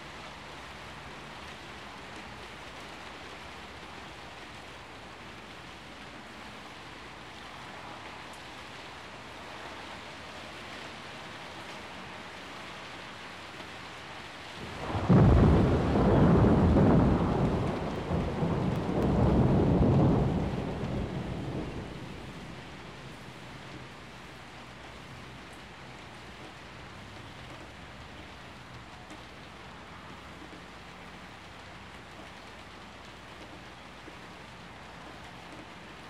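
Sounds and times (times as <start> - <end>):
heavy rain: 0.0 - 36.0
rolling thunder: 14.6 - 23.6.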